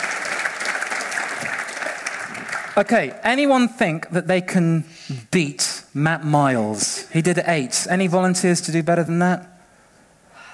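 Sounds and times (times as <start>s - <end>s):
live show audience applauding a volunteer: 0.0s - 3.2s
speech: 2.8s - 9.5s.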